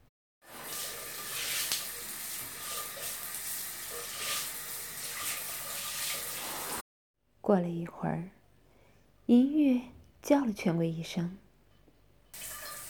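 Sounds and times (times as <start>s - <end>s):
water running from a bathroom tap: 0.4s - 6.8s, 12.4s - 12.8s
speech: 7.5s - 8.4s, 9.3s - 11.4s.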